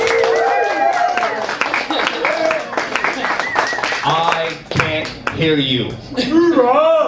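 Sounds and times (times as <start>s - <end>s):
several people shouting and cheering: 0.0s - 2.8s
audience clapping: 0.0s - 5.6s
speech: 5.4s - 7.0s.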